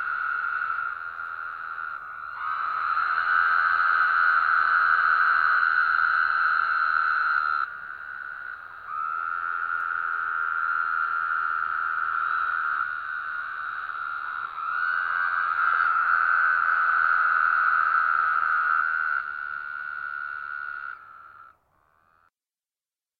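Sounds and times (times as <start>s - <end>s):
Woodhouse's toads calling: 0.0s - 22.3s.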